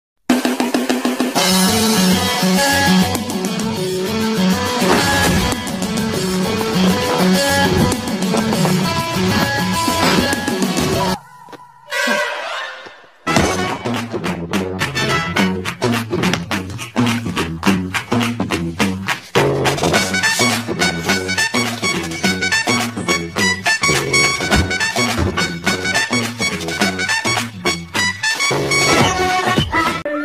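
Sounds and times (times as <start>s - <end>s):
comedy background music: 0.3s - 11.2s, 11.9s - 30.1s.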